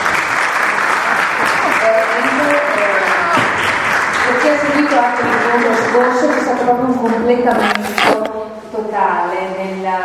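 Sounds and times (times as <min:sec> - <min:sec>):
audience applause: 0:00.0 - 0:06.6
speech: 0:04.6 - 0:10.0.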